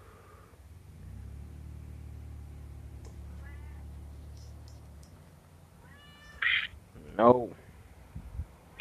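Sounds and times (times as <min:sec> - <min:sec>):
low rumbling hum: 0:00.0 - 0:08.7
cat meowing: 0:03.3 - 0:04.0, 0:05.8 - 0:06.8
speech: 0:07.2 - 0:07.6.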